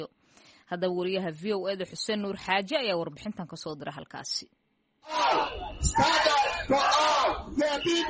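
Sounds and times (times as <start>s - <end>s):
speech: 0.0s - 8.0s
crowd of protesters shouting demands for legal status for immigrants: 5.1s - 8.0s.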